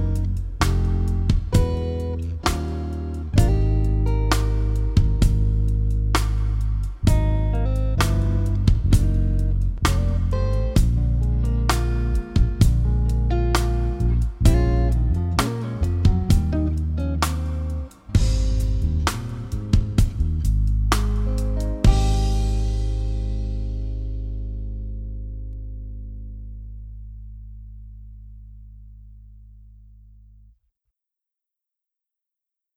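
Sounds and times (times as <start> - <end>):
smooth jazz piano ballad: 0.0 - 25.5.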